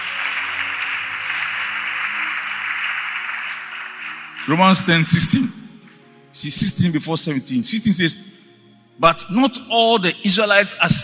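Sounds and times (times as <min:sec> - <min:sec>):
crowd clapping: 0:00.0 - 0:06.0
speech: 0:04.5 - 0:05.6, 0:06.3 - 0:08.3, 0:09.0 - 0:11.0.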